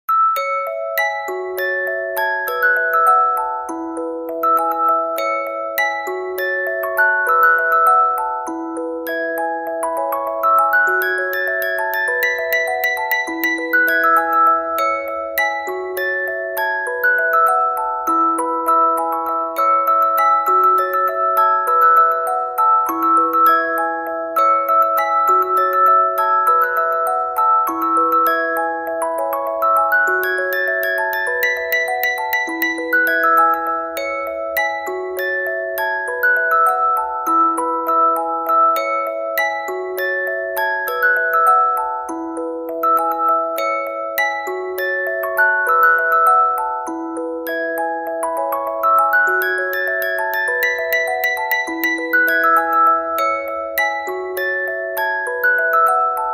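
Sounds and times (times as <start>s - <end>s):
music box: 0.0s - 56.3s.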